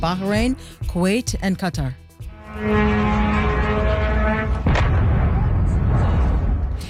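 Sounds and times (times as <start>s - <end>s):
speech: 0.0s - 2.0s, 2.6s - 3.3s
Iranian Shahed drone exploding after hitting a warehouse in Al-Shuaiba, Kuwait: 2.5s - 6.8s.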